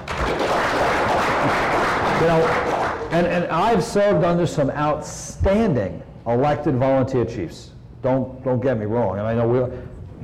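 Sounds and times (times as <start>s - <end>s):
audience clapping in agreement: 0.0s - 3.2s
speech: 2.2s - 10.2s.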